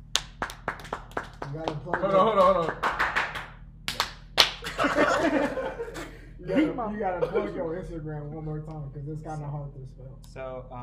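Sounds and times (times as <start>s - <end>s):
few people clapping: 0.0s - 5.1s
speech: 1.5s - 2.9s, 6.4s - 10.8s
laughter: 1.9s - 3.1s, 4.6s - 7.7s.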